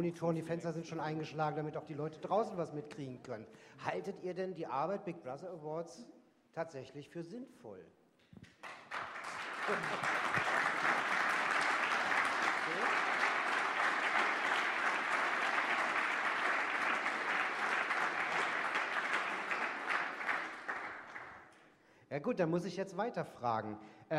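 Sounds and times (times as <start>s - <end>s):
speech: 0.0s - 8.8s, 9.7s - 10.5s, 22.1s - 24.1s
audience applause in packed hall: 8.5s - 21.5s.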